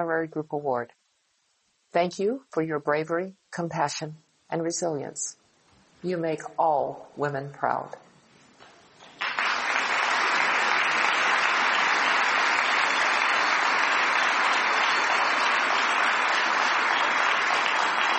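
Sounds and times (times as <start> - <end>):
speech: 0.0 - 1.1, 1.9 - 5.4, 6.0 - 8.1
audience applause: 9.2 - 18.1.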